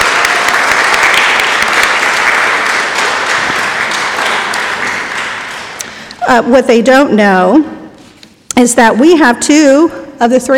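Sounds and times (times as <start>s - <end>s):
audience applause: 0.0s - 6.1s
speech: 6.3s - 7.7s, 8.6s - 10.5s.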